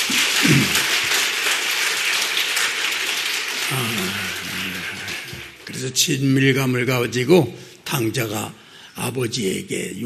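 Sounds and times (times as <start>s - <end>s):
crowd clapping: 0.0s - 6.4s
speech: 0.1s - 0.9s, 5.8s - 10.0s
low voice-like bursts: 3.7s - 5.2s.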